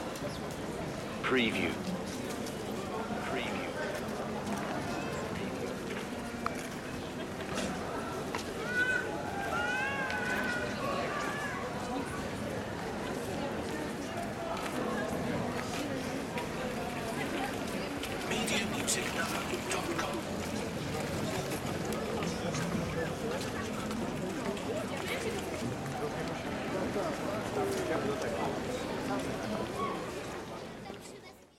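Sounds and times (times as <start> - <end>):
city ambience in a pedestrian area: 0.0 - 31.4
crowd in a city pedestrian area: 0.0 - 31.5.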